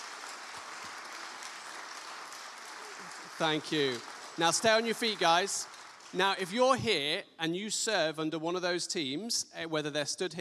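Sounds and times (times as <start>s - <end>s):
round of applause: 0.0s - 6.8s
speech: 3.4s - 10.3s.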